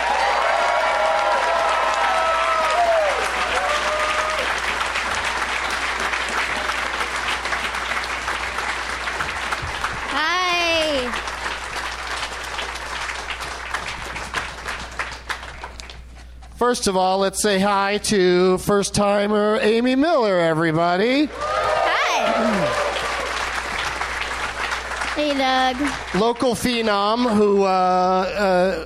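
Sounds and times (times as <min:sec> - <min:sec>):
crowd whooping and cheering: 0:00.0 - 0:08.3, 0:21.3 - 0:24.2
audience applause: 0:00.0 - 0:16.1, 0:21.2 - 0:27.6
speech: 0:16.7 - 0:21.4, 0:25.2 - 0:28.8.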